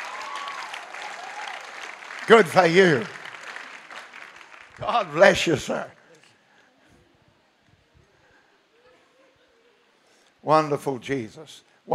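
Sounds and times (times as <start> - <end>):
audience applause: 0.0 - 6.0
speech: 2.3 - 3.2, 4.8 - 6.0, 10.5 - 11.7.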